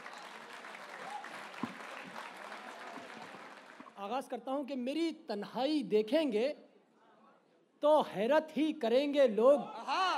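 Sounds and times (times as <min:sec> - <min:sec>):
audience applause welcoming the poet: 0:00.0 - 0:04.0
speech: 0:04.0 - 0:06.6, 0:07.8 - 0:10.0.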